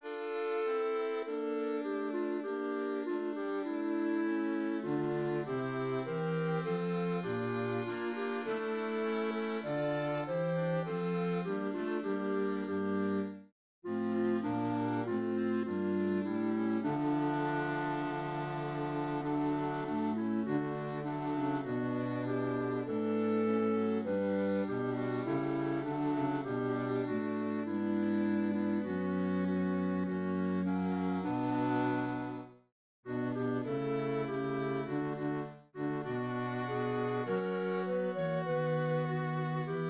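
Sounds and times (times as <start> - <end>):
clarinet: 0.0 - 39.8.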